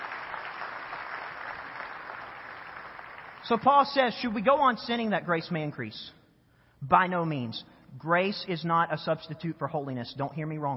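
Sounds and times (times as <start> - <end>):
audience applause: 0.0 - 3.5
speech: 3.5 - 6.2, 6.8 - 10.7.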